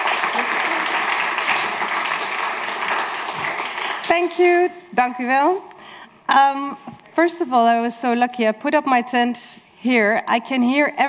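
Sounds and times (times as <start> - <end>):
audience applause: 0.0 - 4.1
speech: 4.1 - 5.7, 6.3 - 11.0.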